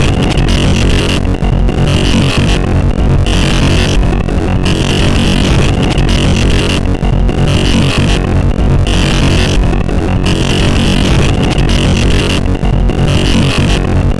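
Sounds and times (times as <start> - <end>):
circuit bent CD player: 0.0 - 14.1.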